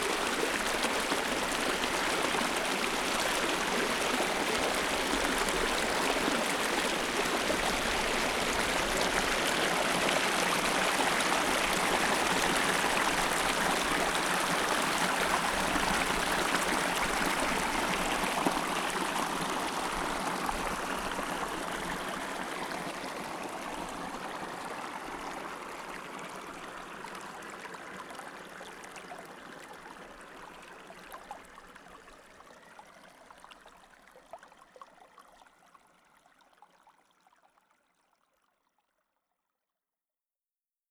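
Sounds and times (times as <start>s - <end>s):
stream flowing downhill: 0.0s - 37.3s.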